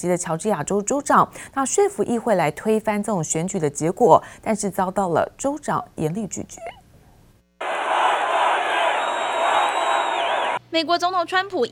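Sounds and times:
speech: 0:00.0 - 0:06.8, 0:10.7 - 0:11.7
rally crowd cheering and applauding: 0:07.6 - 0:10.6.

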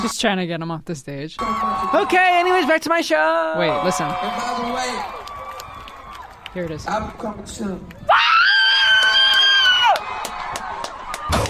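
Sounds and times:
speech: 0:00.0 - 0:05.3, 0:06.6 - 0:08.2
high-pitched scream-like cheer in a home video: 0:01.4 - 0:06.4, 0:08.0 - 0:11.4.

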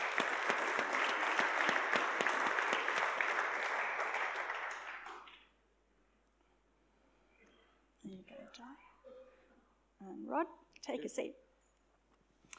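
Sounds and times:
church audience round of applause: 0:00.0 - 0:05.4
speech: 0:10.4 - 0:11.4.

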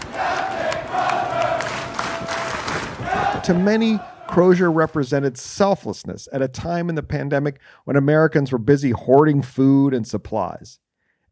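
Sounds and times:
navy crew cheering their captain Crozier as he walks off the ship: 0:00.0 - 0:05.3
speech: 0:03.4 - 0:10.8.

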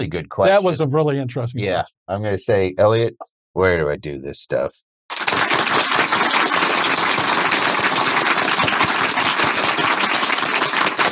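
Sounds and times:
speech: 0:00.0 - 0:04.9
loud dense clapping from several people: 0:05.1 - 0:11.0.

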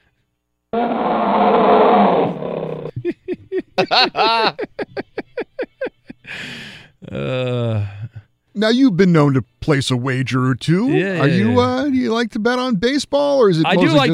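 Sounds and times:
tiger roaring and growling: 0:00.8 - 0:03.0
laughter: 0:02.9 - 0:06.3
speech: 0:03.8 - 0:04.8, 0:08.6 - 0:14.1.

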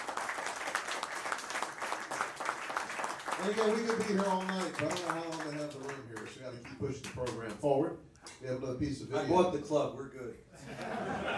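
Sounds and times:
audience applause: 0:00.0 - 0:06.4
speech: 0:03.4 - 0:11.3
laughter: 0:10.5 - 0:11.3.

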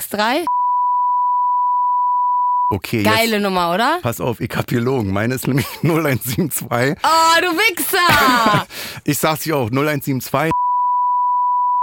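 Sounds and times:
speech: 0:00.0 - 0:00.6, 0:02.7 - 0:10.6
censor bleep over phone number: 0:00.4 - 0:02.8, 0:10.5 - 0:11.8
laughter: 0:05.4 - 0:07.2, 0:07.8 - 0:08.9.

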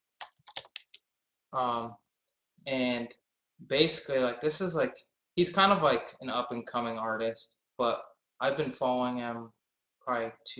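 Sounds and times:
typing on a computer keyboard: 0:00.2 - 0:01.0
speech: 0:01.5 - 0:02.0, 0:02.6 - 0:10.5.

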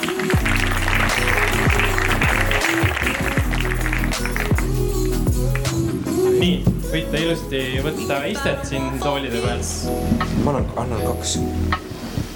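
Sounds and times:
audience applause: 0:00.0 - 0:05.9
upbeat music: 0:00.0 - 0:12.3
speech: 0:07.1 - 0:11.9.

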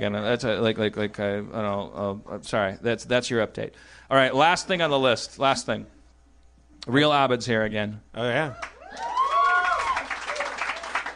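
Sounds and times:
speech: 0:00.0 - 0:06.0, 0:06.8 - 0:09.1
enthusiastic whoop: 0:08.6 - 0:11.1
small live audience applauding: 0:08.6 - 0:11.1.

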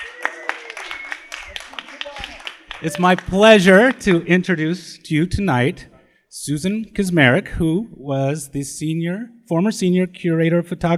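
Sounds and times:
scattered uneven audience clapping: 0:00.0 - 0:04.6
speech: 0:02.8 - 0:10.9.

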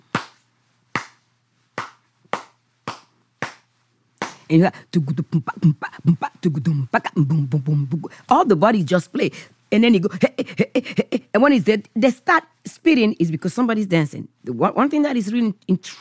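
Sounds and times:
hand claps imitating a traditional rhythm: 0:00.1 - 0:01.2, 0:01.8 - 0:04.5
person speaking quickly: 0:04.4 - 0:15.9
speech: 0:04.5 - 0:15.9.

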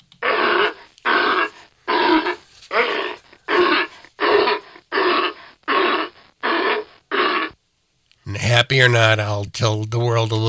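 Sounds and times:
sea lion barking: 0:00.2 - 0:07.6
speech: 0:08.7 - 0:10.4.

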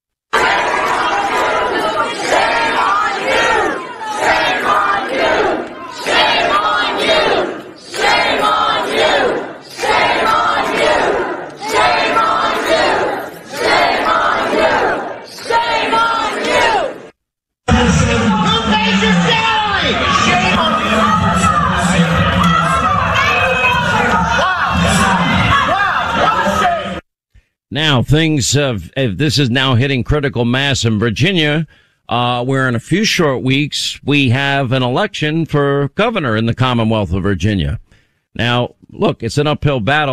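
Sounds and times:
parents emotionally yelling at school board members: 0:00.4 - 0:17.0, 0:17.7 - 0:27.0
speech: 0:28.1 - 0:37.8, 0:38.4 - 0:40.1.

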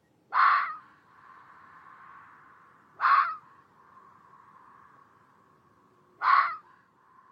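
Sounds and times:
vixen fox scream: 0:00.3 - 0:01.0, 0:03.0 - 0:03.5, 0:06.2 - 0:06.7.

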